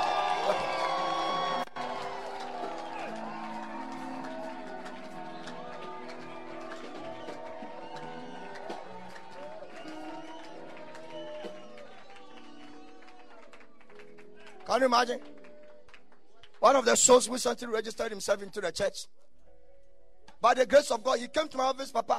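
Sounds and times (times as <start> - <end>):
audience clapping and cheering: 0.0 - 16.9
speech: 14.8 - 15.3, 16.6 - 19.2, 20.4 - 22.1.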